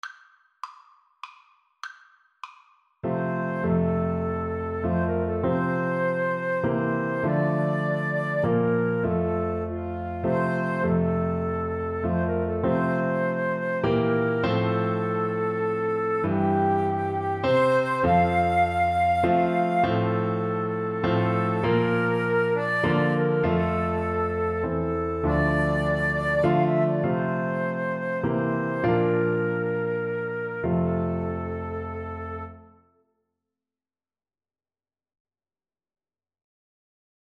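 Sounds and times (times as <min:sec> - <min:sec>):
flute duet: 0:03.0 - 0:32.8.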